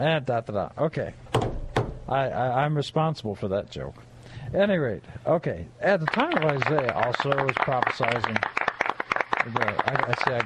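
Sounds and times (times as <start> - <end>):
speech: 0.0 - 1.2, 2.1 - 8.6, 9.4 - 10.4
one person clapping: 6.0 - 10.4.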